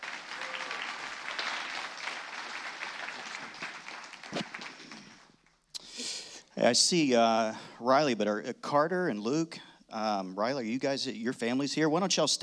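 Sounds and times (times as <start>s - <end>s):
audience applause welcoming a speaker to a church stage: 0.0s - 5.6s
speech: 6.6s - 12.4s.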